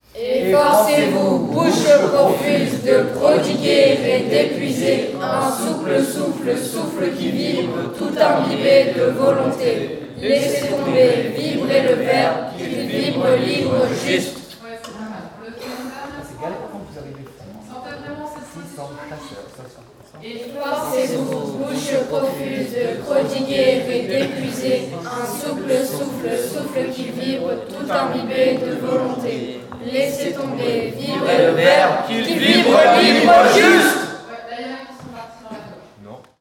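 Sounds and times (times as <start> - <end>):
many mouths warming up: 0.2 - 14.4, 20.5 - 34.3.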